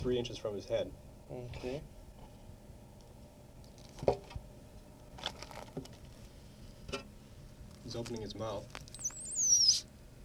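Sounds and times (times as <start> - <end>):
speech: 0.0 - 2.0, 4.0 - 4.4, 7.9 - 8.9
faint low rumble: 0.0 - 10.2
small caged animal squeaking: 8.8 - 9.9.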